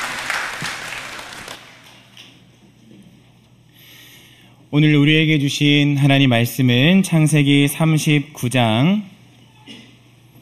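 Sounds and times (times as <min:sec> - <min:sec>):
audience applause: 0:00.0 - 0:02.0
speech: 0:04.7 - 0:09.1.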